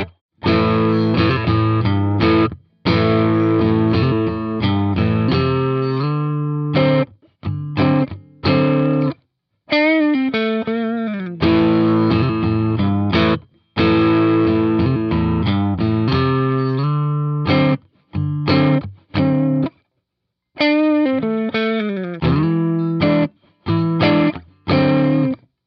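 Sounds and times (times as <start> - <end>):
distorted amplifier with middle setting: 0.0 - 9.2, 9.8 - 19.8, 20.6 - 25.4.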